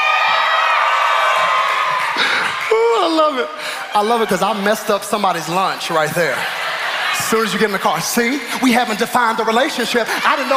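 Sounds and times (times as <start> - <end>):
audience cheering and whooping: 0.0 - 10.5
laughter: 2.0 - 10.5
speech: 3.2 - 6.6, 7.2 - 10.5.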